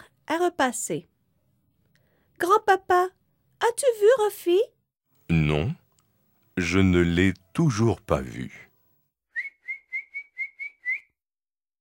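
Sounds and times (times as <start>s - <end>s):
speech: 0.3s - 1.1s, 2.4s - 5.8s, 6.6s - 8.7s
kettle boiling water and whistling: 9.4s - 11.1s.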